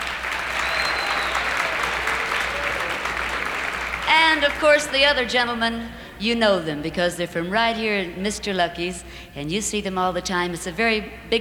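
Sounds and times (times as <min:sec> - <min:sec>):
audience applause: 0:00.0 - 0:05.0
speech: 0:04.4 - 0:11.3.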